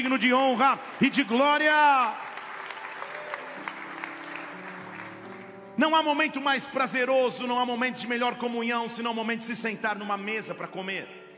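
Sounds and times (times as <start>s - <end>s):
speech: 0.0s - 2.3s, 5.8s - 11.2s
audience applause: 0.5s - 5.6s.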